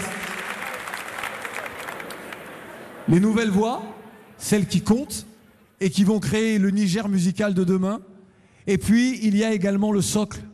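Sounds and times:
audience applause at a French-language music event: 0:00.0 - 0:03.1
speech: 0:03.1 - 0:08.1, 0:08.7 - 0:10.5.

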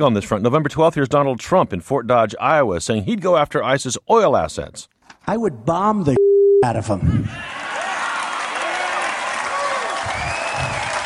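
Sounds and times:
speech: 0:00.0 - 0:07.5
crowd applause for Mr. Trump at political rally: 0:07.4 - 0:11.0.

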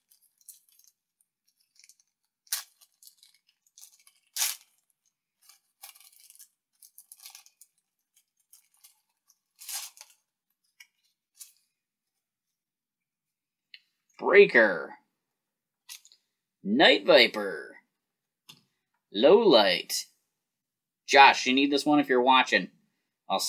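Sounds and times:
packs of G.I. Joe trading cards being torn open: 0:00.0 - 0:10.3
speech: 0:14.2 - 0:14.9, 0:16.7 - 0:17.7, 0:19.1 - 0:20.1, 0:21.1 - 0:23.4.

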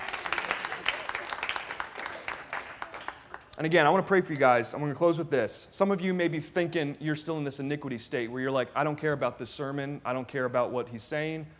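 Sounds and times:
audience clapping: 0:00.0 - 0:04.6
speech: 0:03.6 - 0:11.5.

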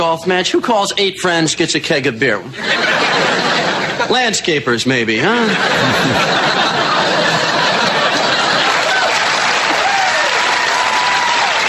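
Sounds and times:
speech: 0:00.0 - 0:07.7
laughter: 0:02.5 - 0:04.4, 0:05.2 - 0:10.2
audience applause: 0:06.1 - 0:11.6.

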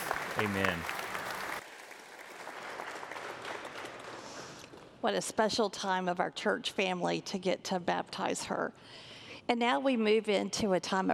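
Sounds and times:
audience applauding: 0:00.0 - 0:04.5
speech: 0:00.4 - 0:01.0, 0:05.0 - 0:11.1.

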